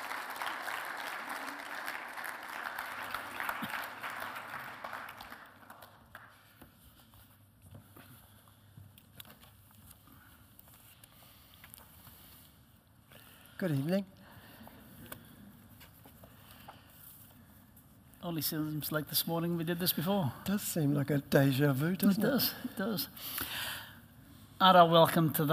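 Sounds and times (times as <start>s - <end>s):
audience applause welcoming two speakers: 0.0s - 6.4s
speech: 13.6s - 14.1s, 18.4s - 23.6s, 24.6s - 25.5s.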